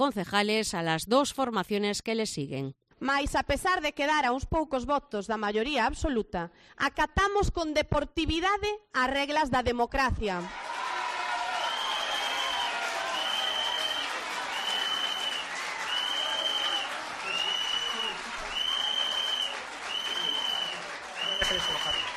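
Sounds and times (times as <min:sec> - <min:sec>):
speech: 0:00.0 - 0:10.8
crowd clapping and murmuring: 0:10.5 - 0:22.1
shrill whistle blown in audience: 0:11.5 - 0:22.1.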